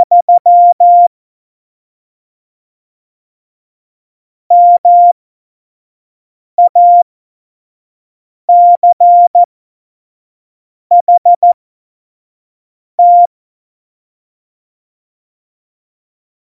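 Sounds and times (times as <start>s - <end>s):
Morse code course beeps: 0.0s - 1.1s, 4.5s - 5.2s, 6.6s - 7.0s, 8.5s - 9.5s, 10.9s - 11.6s, 13.0s - 13.3s.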